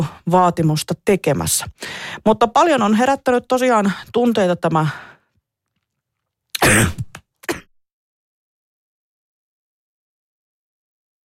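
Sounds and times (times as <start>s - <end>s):
speech: 0.0s - 5.1s, 6.6s - 7.1s
person coughing after something went down the wrong way: 6.6s - 7.7s.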